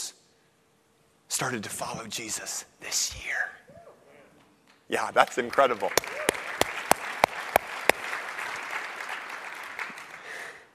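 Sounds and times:
speech: 0:01.4 - 0:03.6, 0:04.9 - 0:06.4
audience clapping: 0:05.0 - 0:10.7.

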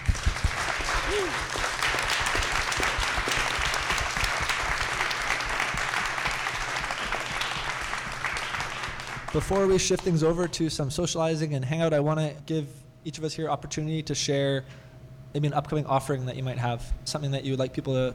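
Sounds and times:
audience applause: 0:00.0 - 0:10.0
speech: 0:01.1 - 0:01.6, 0:09.4 - 0:18.1.

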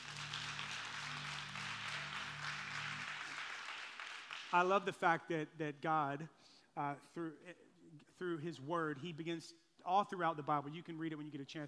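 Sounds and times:
audience applause: 0:00.0 - 0:04.6
speech: 0:04.5 - 0:11.6.

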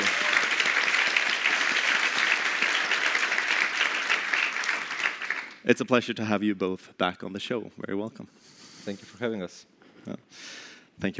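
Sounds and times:
audience applause: 0:00.0 - 0:05.6
speech: 0:05.7 - 0:11.1.

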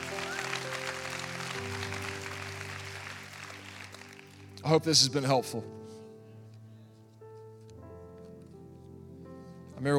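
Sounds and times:
audience clapping hands: 0:00.0 - 0:04.7
speech: 0:04.6 - 0:05.8.

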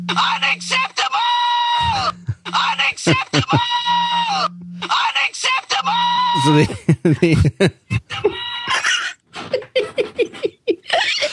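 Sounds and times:
phone ringtone for calls: 0:00.0 - 0:00.9, 0:01.8 - 0:05.1, 0:05.8 - 0:06.6
speech: 0:00.1 - 0:01.2, 0:03.0 - 0:03.8, 0:06.4 - 0:08.8
laughter: 0:01.8 - 0:03.9, 0:06.4 - 0:11.3.

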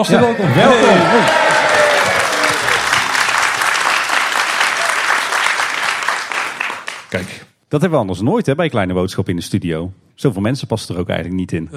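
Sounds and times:
speech: 0:00.0 - 0:01.4, 0:07.1 - 0:11.7
large audience applauding in a hall: 0:00.5 - 0:07.4.

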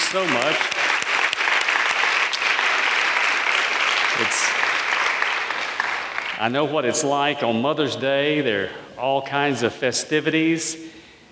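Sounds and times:
audience applause: 0:00.0 - 0:06.4
speech: 0:00.1 - 0:00.8, 0:06.4 - 0:11.0.

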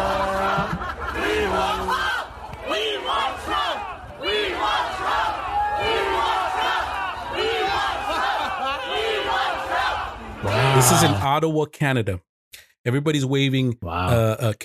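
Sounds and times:
scattered laughter: 0:00.0 - 0:02.0
protest crowd shouting and chanting: 0:00.0 - 0:11.2
speech: 0:10.8 - 0:14.6.

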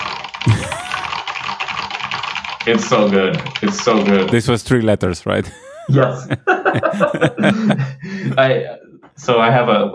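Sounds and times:
typing on a loud computer keyboard: 0:00.0 - 0:04.5
laughter: 0:00.5 - 0:01.1, 0:05.4 - 0:08.7
speech: 0:02.6 - 0:09.9.

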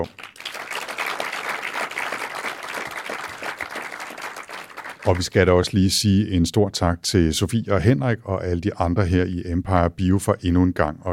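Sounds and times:
speech: 0:00.0 - 0:00.3, 0:05.0 - 0:11.1
audience applause: 0:00.0 - 0:05.4.

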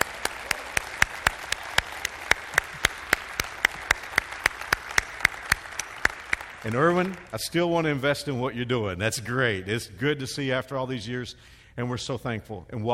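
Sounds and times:
audience applause: 0:00.0 - 0:07.4
speech: 0:06.6 - 0:12.9.

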